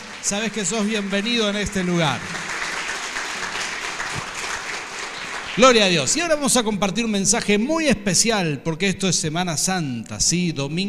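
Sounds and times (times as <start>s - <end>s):
audience applause: 0.0s - 6.3s
speech: 0.2s - 2.4s, 5.6s - 10.8s.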